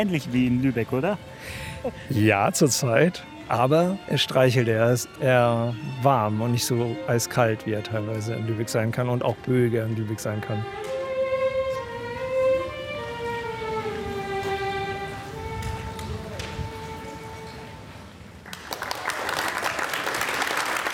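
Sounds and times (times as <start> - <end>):
speech: 0.0 - 10.9
sustained instrumental notes: 0.0 - 18.2
audience applause at open stage concert: 18.4 - 20.9.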